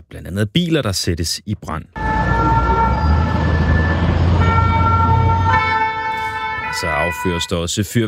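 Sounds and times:
speech: 0.1s - 2.3s, 6.8s - 8.0s
traffic rumble: 1.9s - 8.0s
emergency vehicle sirens in street protest: 2.0s - 8.0s.

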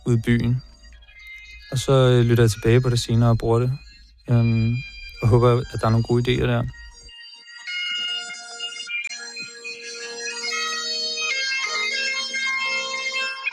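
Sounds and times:
bagpipe recorded on phone voice memo: 0.0s - 13.5s
speech: 0.1s - 0.7s, 1.7s - 6.8s.

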